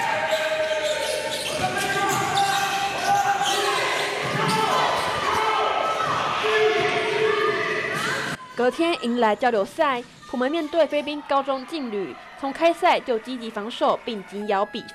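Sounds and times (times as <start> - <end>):
basketballs bouncing during team practice: 0.0 - 8.4
speech: 8.6 - 14.9.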